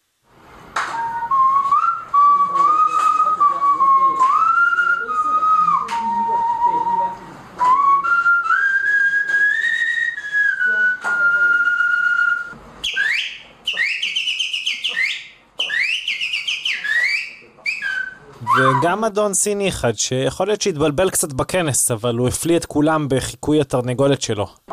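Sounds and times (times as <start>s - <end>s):
people whistling: 0.8s - 19.0s
speech: 18.8s - 24.6s.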